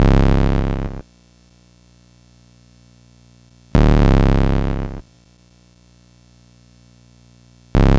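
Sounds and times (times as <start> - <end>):
Atari 2600 chiptune bass: 0.0 - 1.0, 3.8 - 5.0, 7.8 - 7.9.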